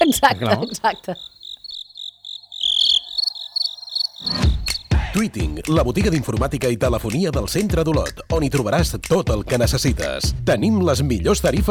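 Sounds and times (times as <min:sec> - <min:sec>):
crickets chirping on Molokai: 0:00.0 - 0:05.0
speech: 0:00.1 - 0:01.4, 0:04.2 - 0:04.5, 0:05.2 - 0:11.6.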